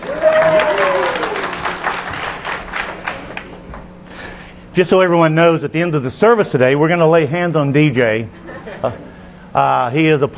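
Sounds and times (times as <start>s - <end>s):
high cheer: 0.0s - 1.8s
audience applause: 0.0s - 3.6s
speech: 4.8s - 10.3s
laughter: 8.4s - 9.3s.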